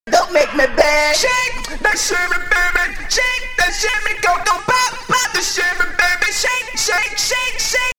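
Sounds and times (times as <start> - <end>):
auto-tuned vocals: 0.0 - 7.9.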